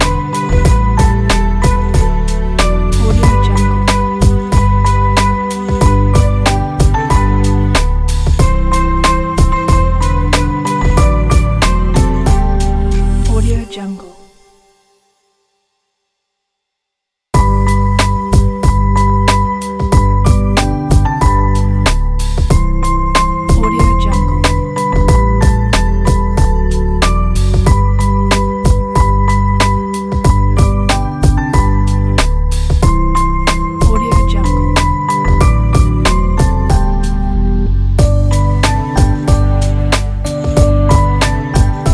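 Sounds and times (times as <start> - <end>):
boom bap hip hop beat: 0.0 - 13.6, 17.4 - 37.4, 38.0 - 41.9.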